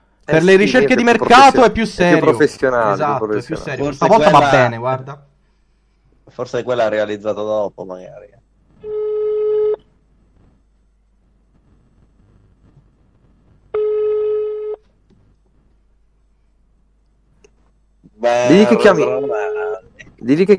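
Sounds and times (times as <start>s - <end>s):
speech: 0.3s - 5.3s, 6.3s - 8.4s, 18.2s - 19.6s, 20.2s - 20.5s
telephone ringback tone on a call to a restaurant: 8.8s - 9.8s, 13.8s - 14.8s.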